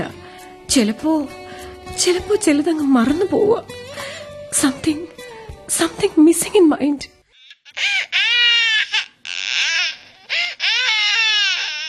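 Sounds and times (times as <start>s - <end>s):
speech: 0.0s - 1.4s, 2.0s - 5.1s, 5.7s - 7.2s
baby crying: 7.3s - 11.8s.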